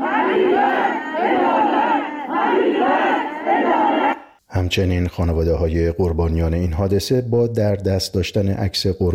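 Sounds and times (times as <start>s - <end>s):
families of crash victims chanting for justice at Imam Khomeini Airport: 0.0s - 4.4s
speech: 4.6s - 9.1s.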